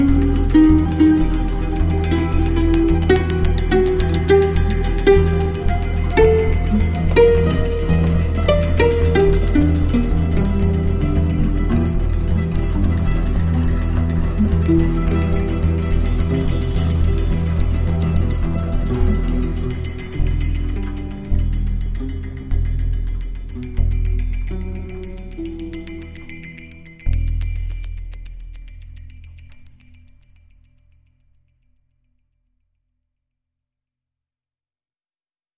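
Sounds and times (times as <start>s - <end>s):
ticking guitar: 0.0s - 27.9s.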